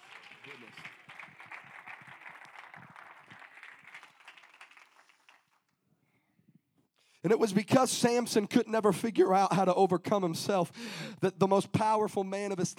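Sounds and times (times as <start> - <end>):
audience clapping: 0.0 - 5.8
speech: 7.2 - 12.7.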